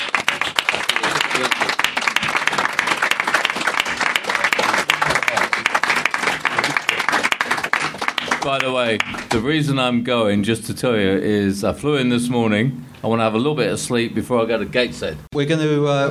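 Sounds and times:
audience applause: 0.0 - 9.4
speech: 8.4 - 16.1.

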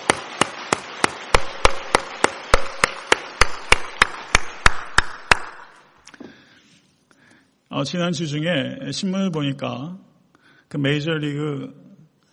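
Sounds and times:
audience applauding: 0.0 - 5.8
speech: 7.8 - 10.1, 10.7 - 11.8.

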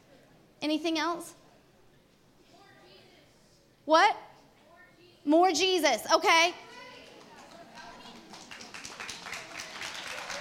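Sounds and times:
speech: 0.6 - 1.4, 3.9 - 4.2, 5.2 - 6.6
audience clapping: 6.6 - 10.3.

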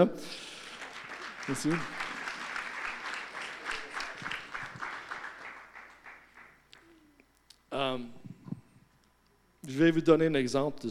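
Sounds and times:
speech: 0.0 - 0.4, 1.5 - 2.0, 7.8 - 8.3, 9.7 - 10.8
audience applause: 0.4 - 7.0.

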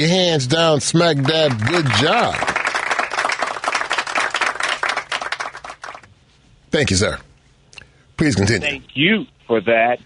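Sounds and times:
speech: 0.0 - 2.6, 6.8 - 7.3, 8.2 - 10.0
audience hand clapping applause: 1.0 - 6.1.

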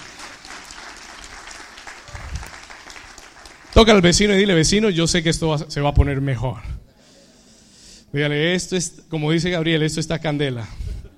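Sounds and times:
church audience applauding: 0.0 - 4.5
speech: 3.8 - 6.7, 8.1 - 10.8.

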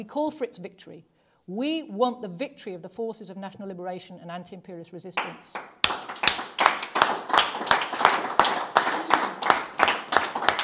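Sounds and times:
speech: 0.0 - 5.8
audience clapping: 5.2 - 10.6.

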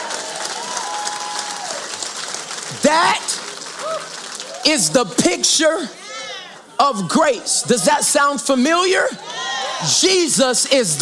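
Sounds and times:
audience applause: 0.0 - 5.4
speech: 2.7 - 6.0, 6.8 - 11.0.

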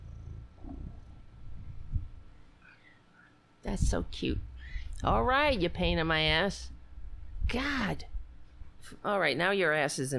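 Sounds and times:
cat purring: 0.0 - 2.3
speech: 3.7 - 6.8, 7.5 - 8.1, 8.8 - 10.1.

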